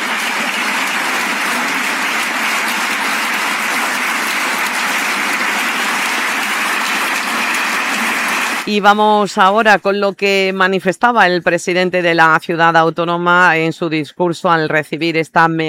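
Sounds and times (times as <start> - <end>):
sustained applause from a large audience: 0.0 - 8.7
speech: 8.7 - 15.6.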